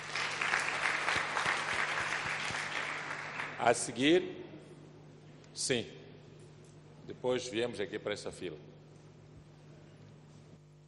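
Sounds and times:
audience applause: 0.0s - 3.6s
speech: 3.6s - 4.4s, 5.6s - 6.0s, 7.1s - 8.7s.

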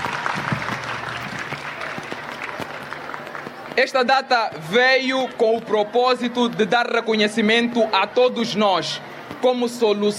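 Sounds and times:
audience applause: 0.0s - 3.8s
speech: 3.8s - 10.1s.

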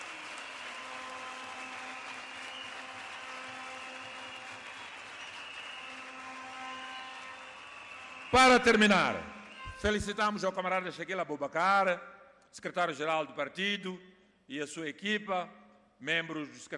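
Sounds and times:
crowd applause: 0.0s - 9.6s
speech: 8.3s - 16.7s.

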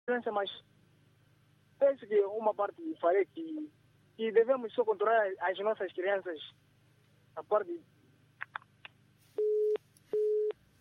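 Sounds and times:
speech: 0.1s - 0.8s, 1.8s - 6.6s, 7.4s - 8.0s
telephone busy tone after a caller's line drops: 9.4s - 10.5s.

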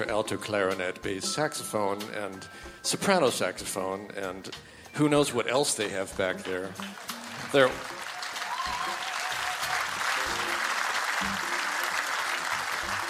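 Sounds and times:
speech: 0.0s - 7.9s
audience applauding: 6.8s - 13.0s.

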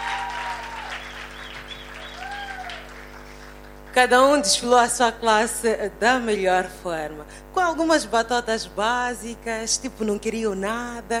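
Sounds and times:
faint whistles and cheers: 0.0s - 2.9s
crowd applause: 0.0s - 4.0s
speech: 4.0s - 11.1s.

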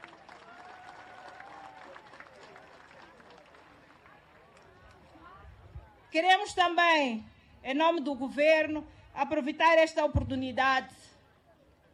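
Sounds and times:
scattered cheers: 0.0s - 2.3s
crowd clapping: 0.0s - 5.1s
speech: 6.1s - 11.0s.

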